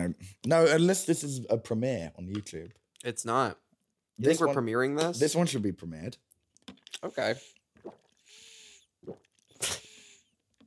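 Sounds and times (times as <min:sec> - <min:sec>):
speech: 0:00.1 - 0:03.6, 0:04.2 - 0:08.0, 0:09.0 - 0:09.8
person sipping water: 0:06.5 - 0:10.6
breathy slightly whistling inhale: 0:08.2 - 0:08.9.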